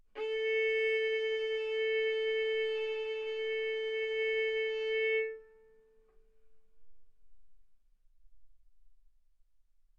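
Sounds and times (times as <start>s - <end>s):
violin arco on A string: 0.2s - 5.7s.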